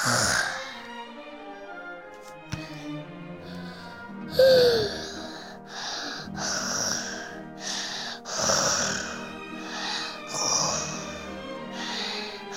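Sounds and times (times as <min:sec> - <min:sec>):
sleeping family snoring: 0:00.0 - 0:01.0, 0:03.5 - 0:12.5.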